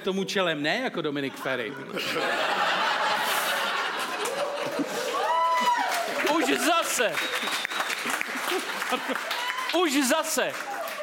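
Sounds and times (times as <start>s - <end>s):
speech: 0.0s - 3.0s, 6.5s - 7.7s, 8.5s - 10.8s
laughter: 1.2s - 7.1s, 8.0s - 9.4s
applause: 4.2s - 11.0s.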